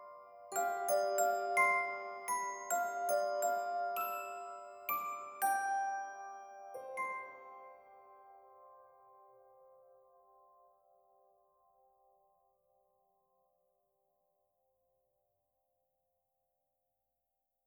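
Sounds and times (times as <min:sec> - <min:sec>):
music box: 0:00.0 - 0:10.7.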